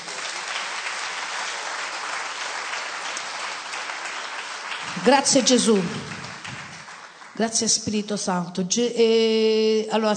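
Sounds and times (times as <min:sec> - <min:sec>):
audience applause: 0:00.0 - 0:07.5
speech: 0:05.0 - 0:06.2, 0:07.4 - 0:10.1.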